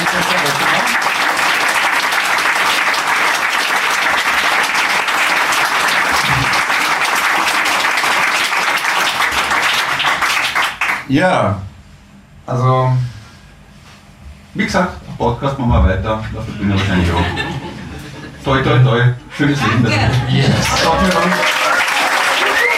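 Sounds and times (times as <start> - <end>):
audience applause welcoming someone: 0.0 - 11.1, 20.3 - 22.7
speech: 11.1 - 11.7, 12.5 - 13.2, 14.6 - 17.5, 18.4 - 21.5
laughter: 16.5 - 18.6, 19.4 - 22.7.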